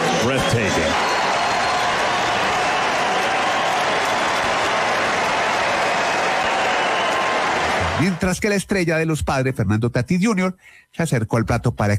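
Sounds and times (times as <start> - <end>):
large stadium crowd clapping and cheering in a standing ovation: 0.0 - 8.5
speech: 8.0 - 11.9.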